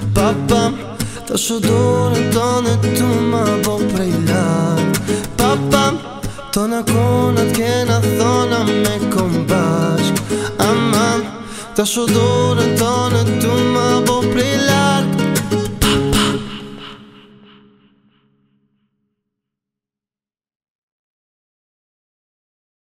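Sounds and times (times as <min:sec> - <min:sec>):
acoustic song: 0:00.0 - 0:17.9.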